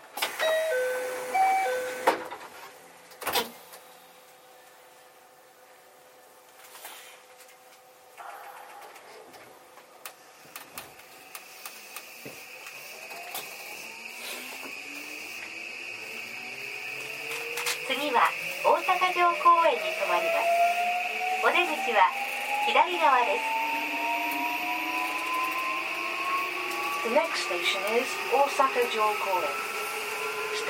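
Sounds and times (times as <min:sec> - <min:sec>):
JR 323 series train door chime: 0:00.3 - 0:02.2
JR 323 series train electric motor whine: 0:11.8 - 0:30.6
speech: 0:21.5 - 0:23.6, 0:27.0 - 0:29.7.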